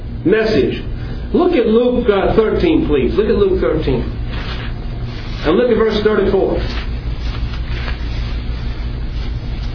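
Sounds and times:
speech: 0.3 - 4.2, 5.4 - 6.8
pages of bibles being turned: 4.3 - 5.5, 6.6 - 9.7.

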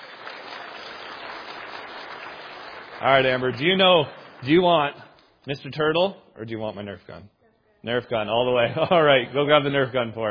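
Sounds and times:
applause for a first-place prize winner at a gathering: 0.0 - 5.0
speech: 3.0 - 10.3.

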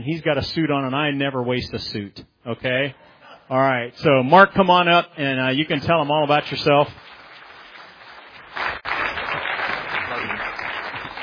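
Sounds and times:
speech: 0.0 - 7.0
audience cheering and applause: 5.9 - 11.2.

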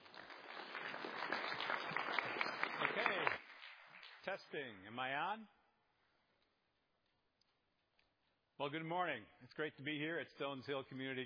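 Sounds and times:
faint audience applause welcoming a guest speaker at a community church in Indiana: 0.0 - 4.2
speech: 4.2 - 5.6, 8.6 - 11.2.

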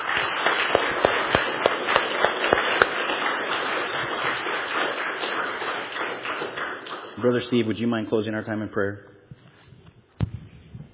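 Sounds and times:
audience applause: 0.0 - 7.6
speech: 7.2 - 9.2.

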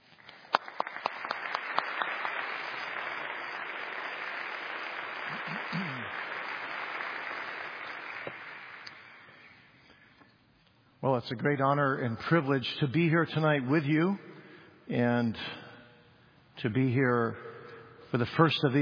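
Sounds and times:
church audience clapping to welcome a guest preacher: 0.0 - 9.6
speech: 11.0 - 14.3, 14.9 - 15.6, 16.6 - 17.5, 18.1 - 18.7.

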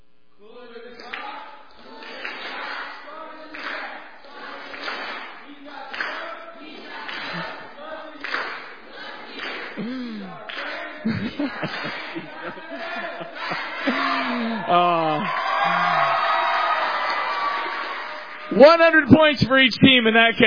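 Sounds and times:
people clapping: 0.9 - 19.3
crowd cheering together: 1.0 - 19.2
laughter: 6.9 - 7.7, 9.8 - 16.4
speech: 11.4 - 16.3, 18.5 - 20.4.

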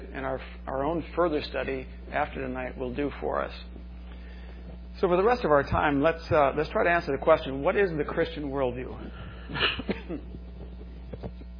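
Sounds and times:
speech: 0.2 - 3.8, 5.0 - 10.4
person coughing: 9.4 - 10.3.

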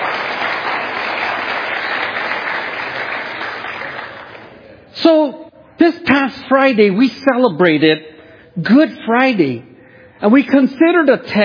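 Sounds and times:
audience applause: 0.0 - 4.6
speech: 5.0 - 11.4.

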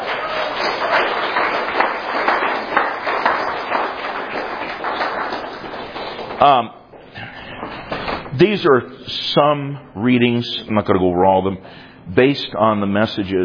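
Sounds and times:
audience applause: 0.0 - 6.7
speech: 6.4 - 6.8, 8.4 - 13.4.

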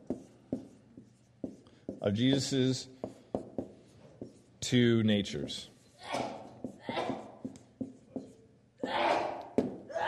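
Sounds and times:
speech: 2.0 - 3.0, 4.7 - 6.2
person sneezing: 6.0 - 7.3, 8.8 - 10.0.

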